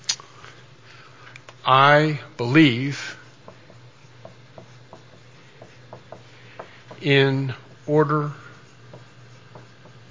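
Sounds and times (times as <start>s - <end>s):
speech: 1.6s - 3.1s, 7.0s - 8.4s
writing with a pen: 2.4s - 10.1s.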